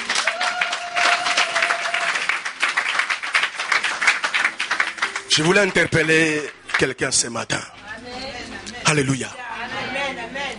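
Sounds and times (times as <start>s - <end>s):
audience applause: 0.0s - 7.0s
speech: 5.4s - 7.8s, 8.9s - 9.4s.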